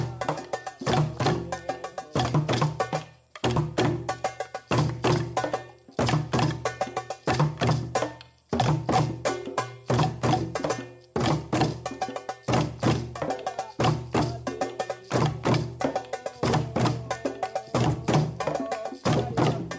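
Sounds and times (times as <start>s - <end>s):
house drumming session in Africa: 0.0s - 19.7s.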